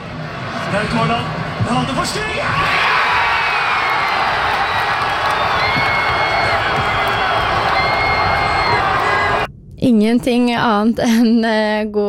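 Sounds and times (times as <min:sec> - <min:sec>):
crowd cheering in Porsgrunn as Norway scored against Brazil: 0:00.0 - 0:09.5
speech: 0:00.7 - 0:02.9, 0:09.8 - 0:12.0.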